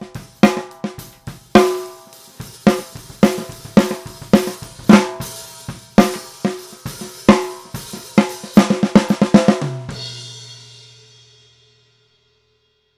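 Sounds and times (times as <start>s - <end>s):
TAMA PM206 14X65 snare drum: 0.0s - 10.2s.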